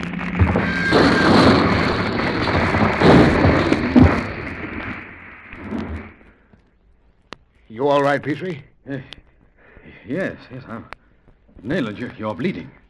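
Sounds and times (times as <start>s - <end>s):
boulder crashing down onto the road: 0.3s - 6.1s
speech: 8.2s - 9.2s, 10.0s - 11.0s, 11.6s - 12.8s.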